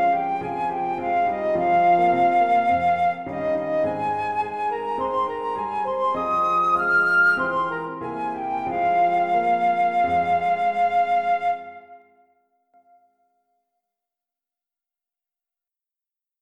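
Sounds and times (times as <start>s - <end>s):
flute: 0.0s - 13.1s
piano: 0.0s - 13.2s.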